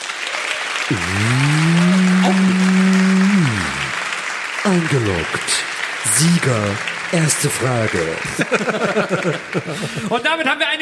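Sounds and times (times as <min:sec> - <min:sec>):
crowd audience applause: 0:00.0 - 0:10.3
speech: 0:00.9 - 0:01.4, 0:02.3 - 0:02.5, 0:04.7 - 0:10.7
laughter: 0:00.9 - 0:04.0, 0:07.6 - 0:10.2.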